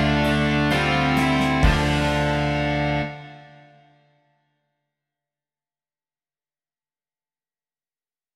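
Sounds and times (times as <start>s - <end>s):
rock music: 0.0s - 4.0s.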